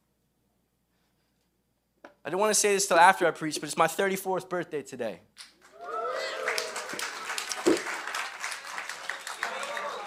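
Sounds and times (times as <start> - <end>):
speech: 2.2 - 5.5
audience clapping loudly: 5.6 - 10.0.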